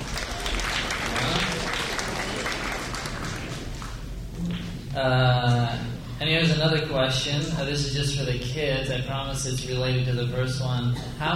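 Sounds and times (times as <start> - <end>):
audience applause: 0.0 - 4.1
speech: 5.0 - 5.4, 6.2 - 11.3.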